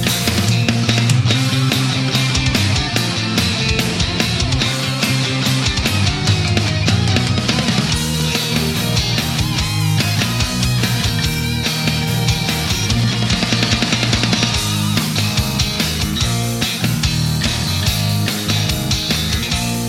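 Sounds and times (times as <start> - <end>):
Vox AC 30 amplifier sound: 0.2 - 19.8.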